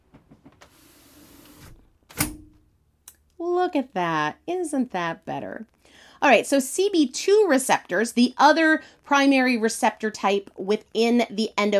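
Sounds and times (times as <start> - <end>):
window motor whirring: 0.6 - 1.8
speech: 3.5 - 11.7.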